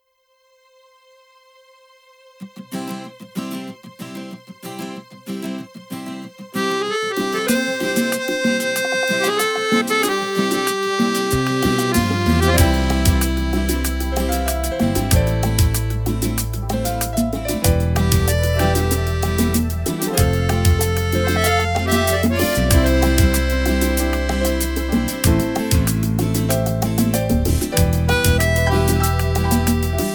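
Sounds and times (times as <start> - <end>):
cumbia music: 6.6 - 30.1.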